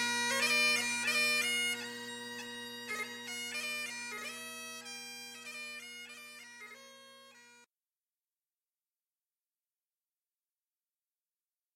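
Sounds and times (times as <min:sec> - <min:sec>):
bagpipes: 0:00.0 - 0:07.7.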